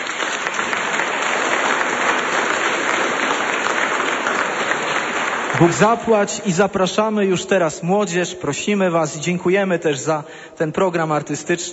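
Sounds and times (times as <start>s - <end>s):
audience applause: 0.0s - 6.3s
speech: 5.6s - 11.7s.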